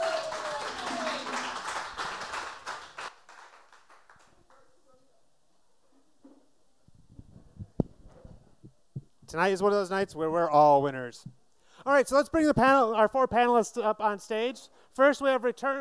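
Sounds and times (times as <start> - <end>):
audience applause: 0.0 - 4.6
speech: 9.3 - 15.8.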